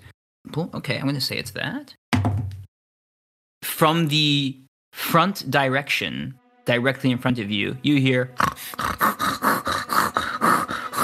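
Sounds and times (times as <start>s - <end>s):
speech: 0.5s - 2.6s, 3.8s - 9.1s
pig snorting and grunting: 8.4s - 11.0s.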